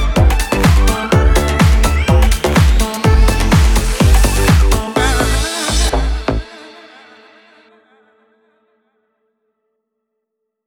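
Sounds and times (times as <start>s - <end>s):
electronic house techno music: 0.0s - 7.4s.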